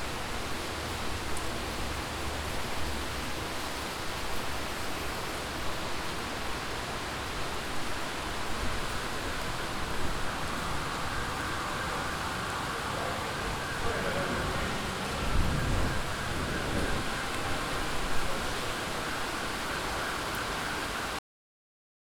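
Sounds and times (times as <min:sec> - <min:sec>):
rainfall: 0:00.0 - 0:21.2.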